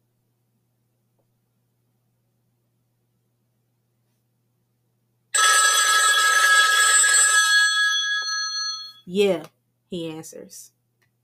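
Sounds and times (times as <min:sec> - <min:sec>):
telephone ringing: 0:05.4 - 0:09.1
speech: 0:09.1 - 0:10.8.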